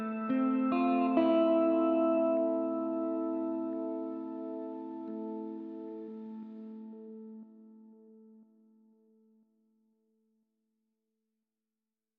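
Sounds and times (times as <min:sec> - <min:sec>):
guitar: 0:00.0 - 0:09.3.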